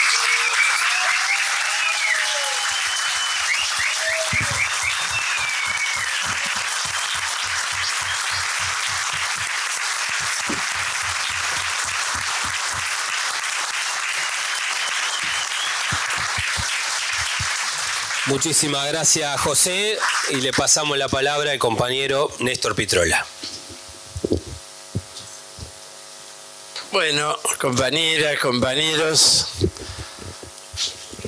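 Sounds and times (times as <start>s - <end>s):
whistles and cheers: 0.0s - 9.5s, 13.6s - 17.4s
large audience applause: 0.0s - 21.1s
speech: 18.3s - 23.4s, 27.0s - 29.8s.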